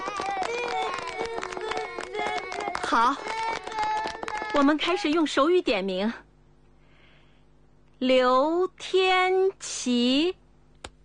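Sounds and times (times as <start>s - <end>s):
overlapping voices chattering: 0.0s - 5.1s
group clapping hands: 0.0s - 5.3s
speech: 2.9s - 3.4s, 4.5s - 6.2s, 8.0s - 10.4s.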